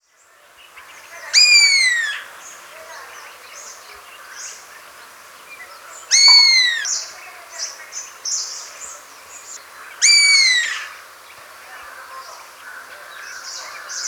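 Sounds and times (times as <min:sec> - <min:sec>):
Indian pitta mewing calls: 0:06.1 - 0:06.9, 0:10.0 - 0:11.0.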